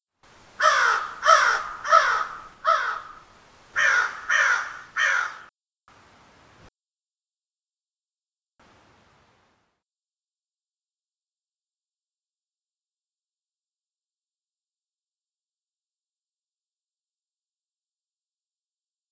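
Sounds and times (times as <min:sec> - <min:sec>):
crow: 0:00.6 - 0:03.2, 0:03.8 - 0:05.5.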